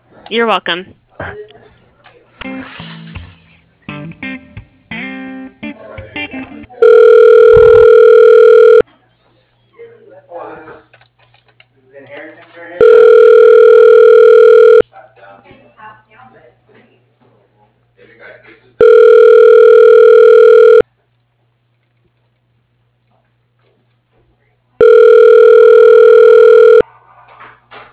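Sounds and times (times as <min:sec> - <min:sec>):
telephone ringback tones during a call transfer: 0:06.8 - 0:08.8, 0:12.8 - 0:14.8, 0:18.8 - 0:20.8, 0:24.8 - 0:26.8.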